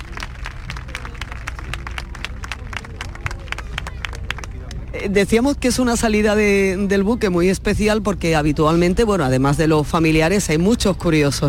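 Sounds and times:
crowd applauding: 0.0s - 4.9s
speech: 5.0s - 11.4s.

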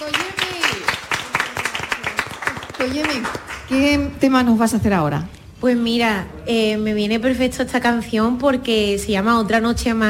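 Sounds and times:
studio audience applause: 0.0s - 3.6s
speech: 2.8s - 10.0s.

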